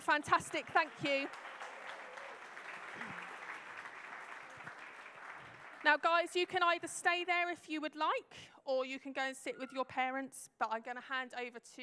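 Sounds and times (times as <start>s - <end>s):
speech: 0.1s - 1.5s, 5.8s - 11.8s
audience applause: 0.4s - 6.1s.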